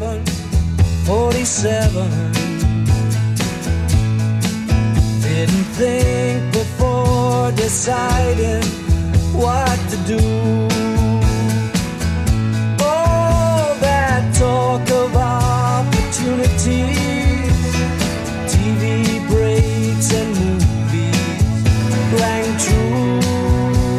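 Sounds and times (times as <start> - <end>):
70s drum beat at 115 bpm: 0.1 - 23.9.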